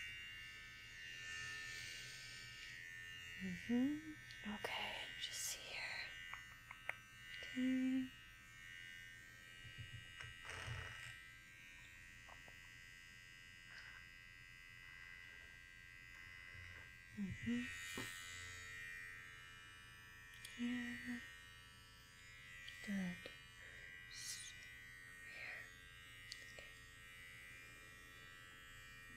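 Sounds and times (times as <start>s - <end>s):
electric hair clippers buzzing: 0.0s - 29.1s
speech: 3.4s - 5.4s, 7.6s - 8.2s
soft whispering voice: 3.4s - 6.1s, 7.4s - 8.1s, 17.2s - 17.7s, 20.5s - 21.2s, 22.7s - 23.4s, 24.1s - 24.6s, 25.3s - 25.7s.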